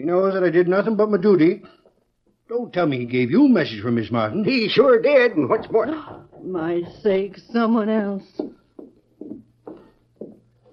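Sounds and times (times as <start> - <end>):
speech: 0.0 - 1.8, 2.5 - 8.6
horse hooves clopping: 4.4 - 10.7.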